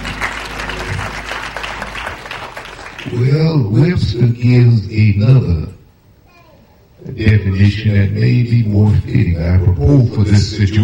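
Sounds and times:
audience hand clapping: 0.0s - 3.3s
speech: 3.2s - 5.8s, 7.2s - 10.8s.

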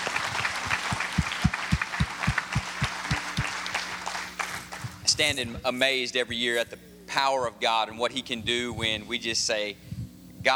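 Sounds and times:
audience applause with hand clapping: 0.0s - 5.0s
speech: 5.2s - 10.5s.

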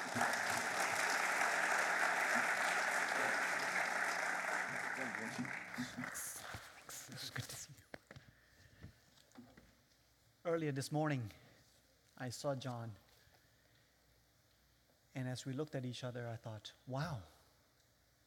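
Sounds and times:
audience applause welcoming a pastor to the stage: 0.0s - 6.8s
speech: 10.5s - 11.4s, 12.2s - 13.0s, 15.2s - 17.3s.

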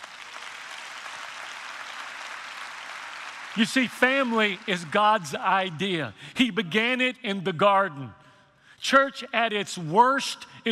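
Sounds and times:
audience clapping: 0.0s - 6.0s
speech: 3.6s - 8.2s, 8.8s - 10.7s.

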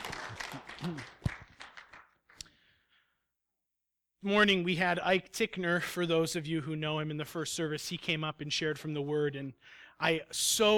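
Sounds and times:
audience applause: 0.0s - 2.1s
speech: 0.8s - 1.2s, 4.2s - 10.7s.

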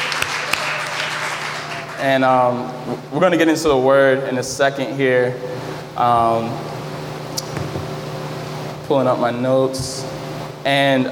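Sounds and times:
audience applause: 0.0s - 2.2s
speech: 2.0s - 6.7s, 8.9s - 11.1s.

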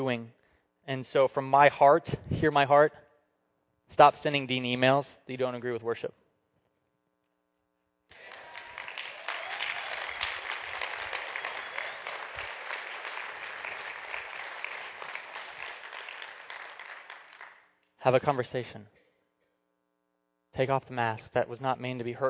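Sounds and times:
speech: 0.0s - 3.0s, 3.9s - 6.2s, 18.0s - 19.0s, 20.6s - 22.2s
audience clapping: 8.1s - 17.7s.

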